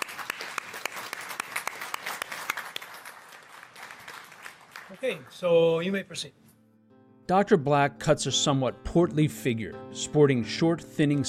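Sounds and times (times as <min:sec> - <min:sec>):
courtroom applause: 0:00.0 - 0:06.0
speech: 0:04.9 - 0:06.4, 0:07.3 - 0:11.2.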